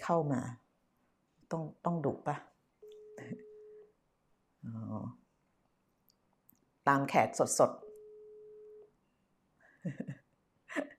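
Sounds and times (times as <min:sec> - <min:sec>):
speech: 0:00.1 - 0:00.6, 0:01.5 - 0:02.5, 0:03.2 - 0:03.5, 0:04.6 - 0:05.2, 0:06.9 - 0:07.8, 0:09.8 - 0:10.9
telephone busy signal during a call: 0:02.8 - 0:03.8, 0:07.8 - 0:08.9.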